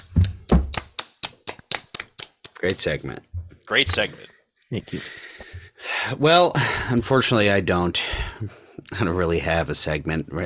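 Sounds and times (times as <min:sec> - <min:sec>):
person clapping: 0:00.0 - 0:02.9
speech: 0:02.6 - 0:05.4, 0:06.0 - 0:10.4.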